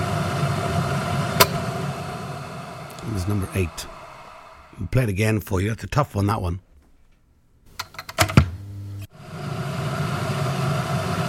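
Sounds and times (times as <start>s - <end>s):
kettle boiling: 0.0s - 4.8s, 7.8s - 11.2s
kettle switch click when boiled: 1.4s - 1.7s
speech: 3.1s - 4.0s, 4.8s - 6.7s.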